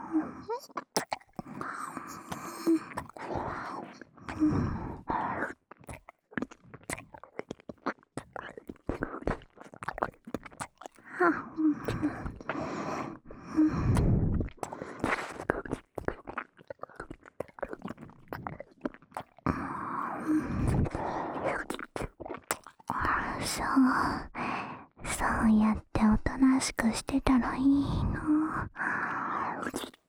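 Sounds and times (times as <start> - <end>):
person whispering: 0.1 - 5.5, 11.2 - 12.5, 20.0 - 22.1, 22.8 - 24.4, 25.0 - 30.0
left ear licking: 0.6 - 4.5, 5.4 - 11.1, 11.8 - 12.6, 13.9 - 23.5.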